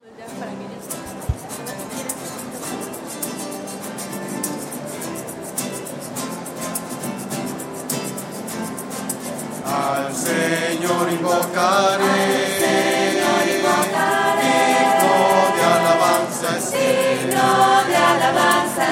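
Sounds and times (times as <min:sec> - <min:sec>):
voices: 0:00.0 - 0:03.8, 0:09.4 - 0:18.9.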